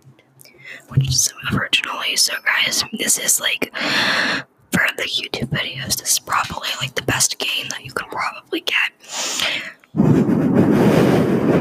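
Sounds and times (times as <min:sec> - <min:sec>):
speech: 0:00.7 - 0:10.7
breathing in close to microphone: 0:03.8 - 0:04.5, 0:09.0 - 0:09.9.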